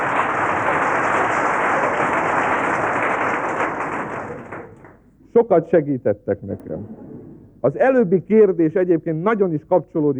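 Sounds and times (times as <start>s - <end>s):
cabaret audience applauding exam candidates: 0.0s - 5.0s
speech: 5.4s - 7.0s, 7.6s - 10.1s.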